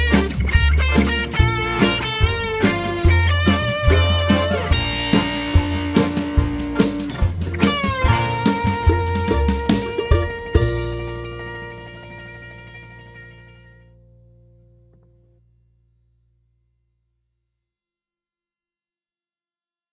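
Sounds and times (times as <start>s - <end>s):
B flat semiquavers: 0.1s - 14.9s.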